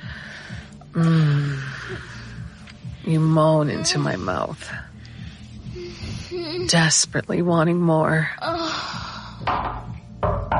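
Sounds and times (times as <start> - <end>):
speech: 1.0 - 1.2, 3.1 - 4.9, 6.2 - 9.0
knocking on a bathroom door: 9.4 - 10.5.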